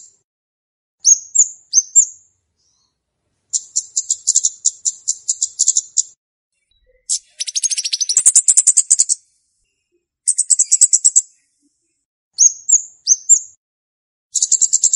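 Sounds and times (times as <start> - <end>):
flowerpecker calls used to lure birds: 1.0 - 2.9, 3.5 - 9.3, 10.3 - 11.4, 12.4 - 13.5, 14.3 - 14.9.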